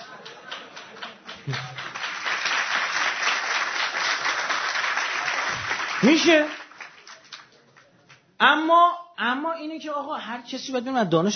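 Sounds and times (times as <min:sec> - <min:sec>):
audience clapping at a speech: 0:00.0 - 0:08.4
speech: 0:01.5 - 0:01.7, 0:06.0 - 0:06.6, 0:08.4 - 0:11.3.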